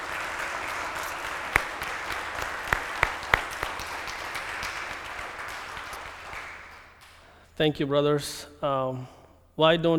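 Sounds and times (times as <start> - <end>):
audience applauding: 0.0 - 7.2
speech: 7.6 - 9.9.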